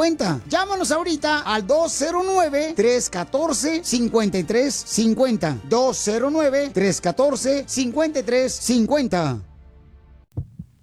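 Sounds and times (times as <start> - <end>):
speech: 0.0 - 9.5
child's fast heartbeat: 10.3 - 10.8.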